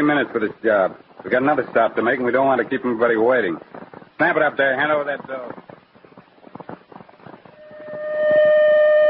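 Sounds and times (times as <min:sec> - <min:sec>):
speech: 0:00.0 - 0:05.7
jumbled commotion: 0:00.0 - 0:09.0
alarm siren wailing: 0:07.6 - 0:09.0.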